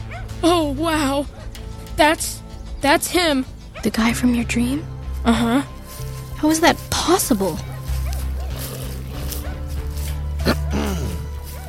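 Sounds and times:
dog barking and yipping: 0.0 - 0.4, 1.2 - 1.9, 3.6 - 4.0, 7.4 - 10.2, 11.2 - 11.6
speech: 0.4 - 1.4, 2.0 - 5.7, 6.4 - 7.7.

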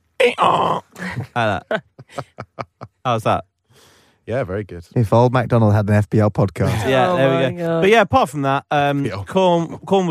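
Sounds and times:
person imitating a donkey braying: 0.2 - 1.0
speech: 0.2 - 3.5, 4.3 - 10.0
laughter: 1.0 - 3.0.

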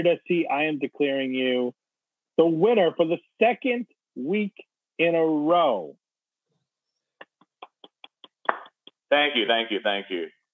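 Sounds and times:
speech: 0.0 - 1.8, 2.4 - 6.0, 9.1 - 10.4
crisp hand claps: 7.2 - 9.0.

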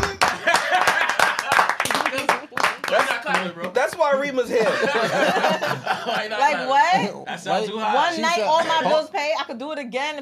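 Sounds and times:
people clapping: 0.0 - 6.2
people talking and laughing: 0.0 - 10.2
speech: 3.4 - 10.2.

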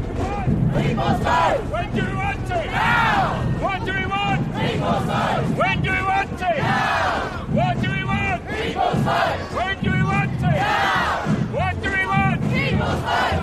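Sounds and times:
protest crowd chanting at a street rally: 0.2 - 13.4.

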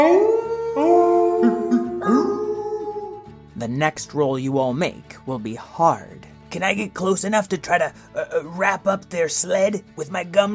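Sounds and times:
speech: 0.0 - 0.5, 3.6 - 10.5
sled dogs howling: 0.0 - 3.2.

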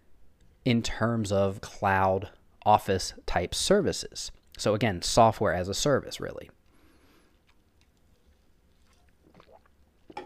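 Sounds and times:
speech: 0.7 - 6.6
person sipping a drink: 6.6 - 10.2.

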